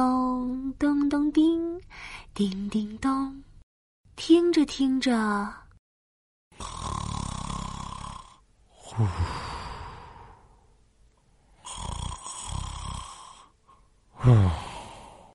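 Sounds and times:
speech: 0.0s - 3.4s, 4.2s - 5.6s, 8.9s - 9.5s, 14.2s - 14.6s
person snoring: 6.6s - 10.7s, 11.6s - 15.3s.

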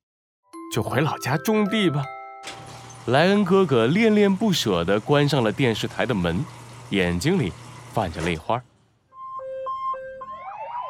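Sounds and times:
speech: 0.7s - 8.7s
police car siren: 9.1s - 10.8s.

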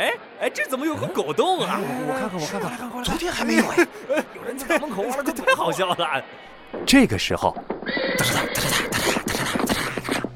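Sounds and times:
speech: 0.4s - 9.0s
laughter: 0.8s - 6.4s
horse hooves clattering: 7.6s - 10.3s.

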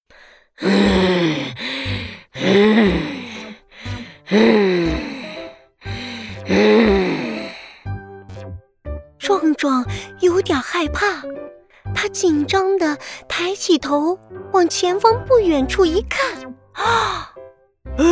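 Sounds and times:
human voice imitating a monster's heavy breathing: 0.1s - 8.0s, 16.8s - 17.4s
speech: 0.6s - 1.1s, 10.4s - 17.3s.

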